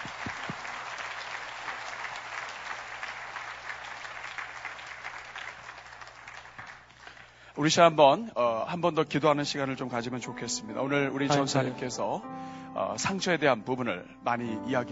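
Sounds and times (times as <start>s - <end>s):
audience applause: 0.0s - 7.4s
speech: 7.6s - 14.9s.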